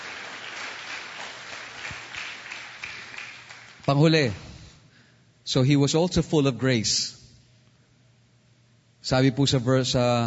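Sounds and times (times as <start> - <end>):
church congregation clapping: 0.0 - 4.5
speech: 3.9 - 4.4, 5.5 - 7.2, 9.0 - 10.2.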